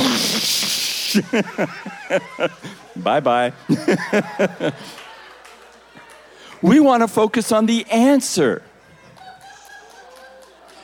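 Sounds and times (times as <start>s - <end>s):
crowd imitating a toilet flushing: 0.0s - 1.3s
short higher-pitched vocal bursts: 0.0s - 1.3s
laughter: 0.0s - 6.1s
speech: 1.1s - 5.0s, 6.6s - 8.7s.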